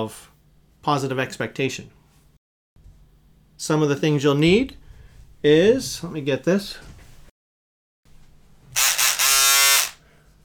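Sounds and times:
speech: 0.0 - 2.0, 3.6 - 4.8, 5.4 - 6.9
electric buzzer: 8.8 - 10.0.

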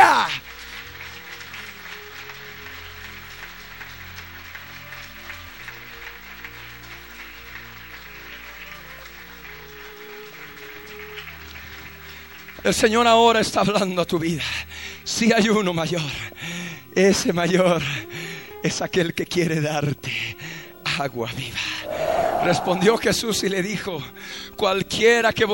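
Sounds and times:
audience applauding: 0.9 - 12.4
speech: 12.6 - 16.3, 17.0 - 20.4, 21.0 - 25.5.

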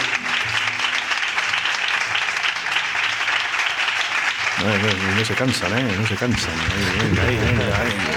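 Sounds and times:
audience applause: 0.0 - 8.1
laughter: 4.6 - 8.1
speech: 4.6 - 8.1.

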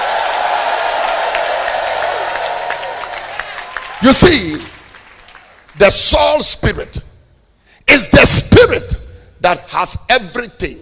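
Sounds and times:
audience shouting: 0.0 - 4.5
audience clapping hands: 0.0 - 6.0
speech: 4.0 - 4.7, 5.8 - 7.1, 7.9 - 10.8.

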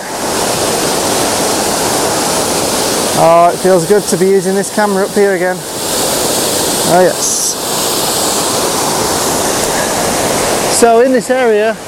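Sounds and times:
large aggressive waterfall on the upper course of a river: 0.0 - 11.8
speech: 3.2 - 5.7, 6.8 - 7.5, 10.8 - 11.8.

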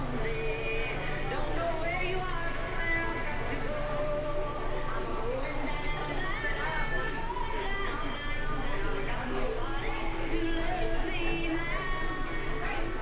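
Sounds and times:
crowd murmur in Animal Kingdom: 0.0 - 13.0.

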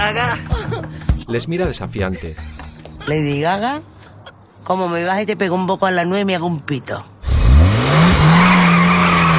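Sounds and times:
speech: 0.0 - 0.5, 1.3 - 3.9, 4.6 - 7.1
car engine revving and roaring: 7.2 - 9.3
car tires squealing: 7.2 - 9.3.

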